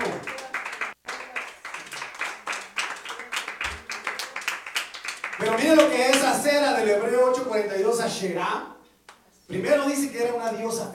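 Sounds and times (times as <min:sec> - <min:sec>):
audience clapping hands in praise: 0:00.0 - 0:06.4
speech: 0:05.4 - 0:08.7, 0:09.5 - 0:10.9.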